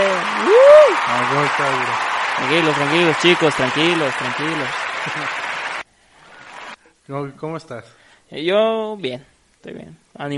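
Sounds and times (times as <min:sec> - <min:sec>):
person whooping: 0:00.0 - 0:01.4
audience applause: 0:00.0 - 0:06.8
speech: 0:01.1 - 0:05.4, 0:07.1 - 0:10.3.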